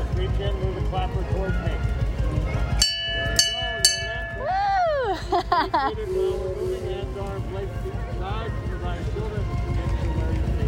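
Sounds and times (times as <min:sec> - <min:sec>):
speech: 0:00.2 - 0:01.9, 0:05.6 - 0:06.6
bell being rung on vintage vehicle: 0:02.8 - 0:04.9
laughter: 0:04.4 - 0:10.5.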